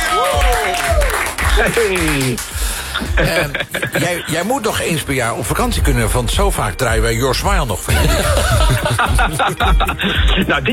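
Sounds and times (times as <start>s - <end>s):
audience applause: 0.0s - 2.9s
speech: 1.6s - 10.7s
laughter: 2.9s - 4.6s, 7.9s - 10.7s.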